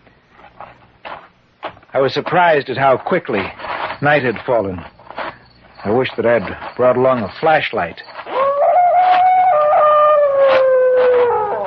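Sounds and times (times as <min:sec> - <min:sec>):
speech: 0:02.0 - 0:04.9, 0:05.8 - 0:08.1
dog crying across the lake: 0:08.3 - 0:11.6.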